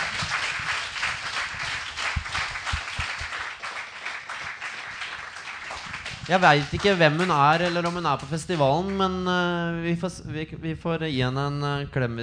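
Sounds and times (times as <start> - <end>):
crowd clapping: 0.0 - 9.1
speech: 6.3 - 12.2.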